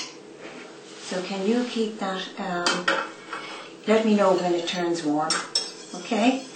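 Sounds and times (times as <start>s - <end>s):
speech: 1.1s - 3.1s, 3.9s - 5.5s, 6.1s - 6.5s
spoon scraping custard out of a bowl: 3.0s - 6.5s.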